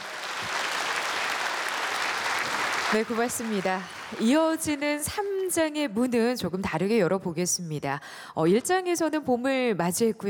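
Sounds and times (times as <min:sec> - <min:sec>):
concert audience applause at a gugak orchestra performance: 0:00.0 - 0:04.6
speech: 0:02.9 - 0:10.2.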